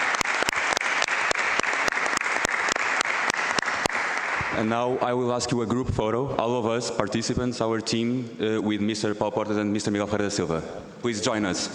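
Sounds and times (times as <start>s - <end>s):
audience applause: 0.0s - 4.6s
speech: 4.5s - 11.7s.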